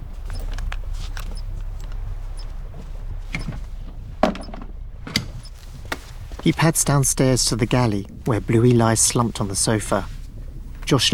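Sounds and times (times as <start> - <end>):
low steady hum: 0.0 - 11.1
radio transceiver handset hidden in a cupboard: 0.2 - 6.5
speech: 6.4 - 10.2, 10.9 - 11.1.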